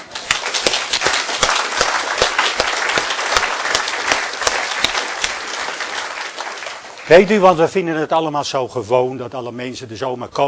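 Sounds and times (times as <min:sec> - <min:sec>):
audience applause: 0:00.0 - 0:07.6
speech: 0:07.1 - 0:10.4.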